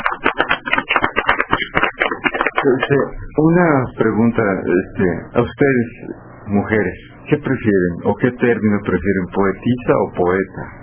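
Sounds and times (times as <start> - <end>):
audience applause after a poem: 0.0 - 2.9
speech: 2.6 - 10.8.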